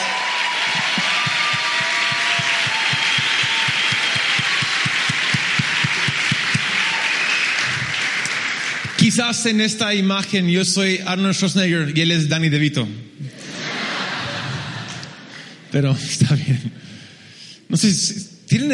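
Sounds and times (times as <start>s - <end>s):
loud audience applause: 0.0s - 9.5s
speech: 9.2s - 13.2s, 15.7s - 16.9s, 17.7s - 18.7s
laughter: 13.2s - 15.6s.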